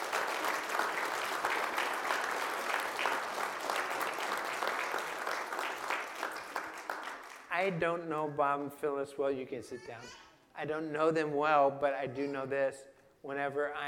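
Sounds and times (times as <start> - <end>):
audience clapping: 0.0 - 7.7
speech: 7.6 - 13.8.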